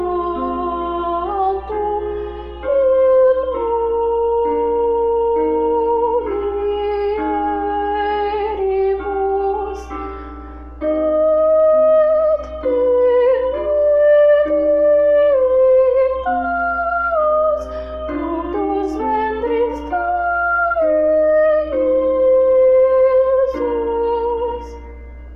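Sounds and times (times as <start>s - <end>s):
soprano singing solo: 0.0s - 10.0s, 10.8s - 24.8s.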